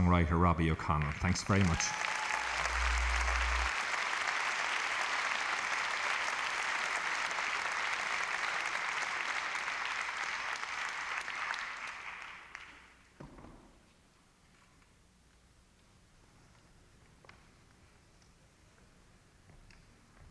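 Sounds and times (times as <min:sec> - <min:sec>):
audience applause welcoming a singer-songwriter to the stage: 0:00.0 - 0:13.1
speech: 0:00.1 - 0:02.2.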